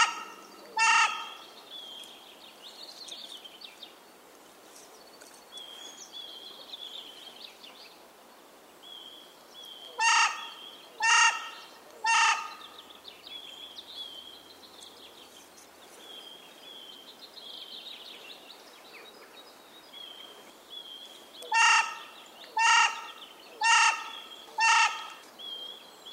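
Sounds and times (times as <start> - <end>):
carrion crow giving harsh hoarse caws: 0.0 - 1.4, 10.0 - 12.6, 21.5 - 25.2.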